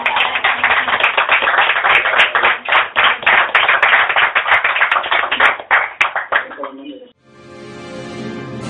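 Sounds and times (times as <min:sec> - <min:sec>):
crowd applauding: 0:00.0 - 0:06.8.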